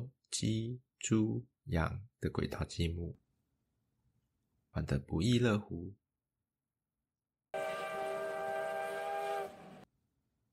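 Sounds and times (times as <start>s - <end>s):
speech: 0.3s - 3.2s, 4.7s - 6.0s
small train passing below: 7.6s - 9.9s.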